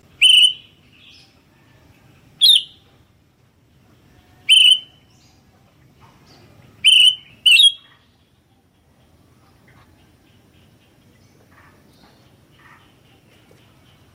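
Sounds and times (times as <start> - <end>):
Sooty-headed bulbul loud piercing chirps: 0.2 - 1.2, 2.4 - 2.8, 4.4 - 5.4, 6.8 - 8.1.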